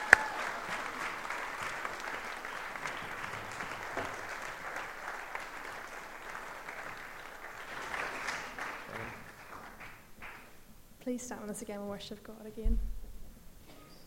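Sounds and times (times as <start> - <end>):
audience clapping: 0.0 - 10.7
speech: 11.1 - 13.0.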